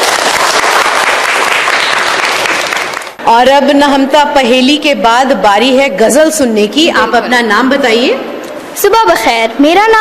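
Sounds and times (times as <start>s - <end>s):
audience clapping: 0.0s - 3.2s
speech: 3.3s - 9.9s.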